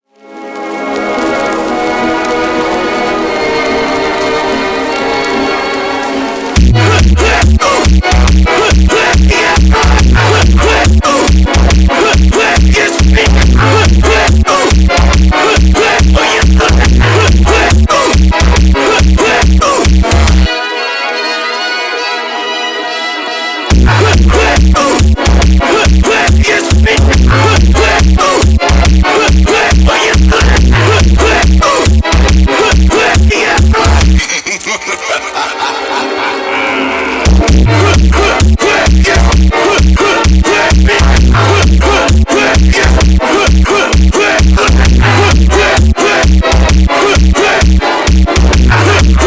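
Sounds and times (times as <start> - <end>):
funk music: 0.3 - 49.2
laughter: 32.5 - 40.7.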